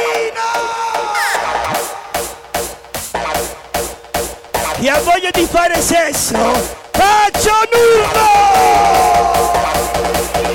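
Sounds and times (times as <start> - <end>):
loud crowd shouting and cheering: 0.0 - 2.4, 4.8 - 10.5
speech: 4.8 - 9.2.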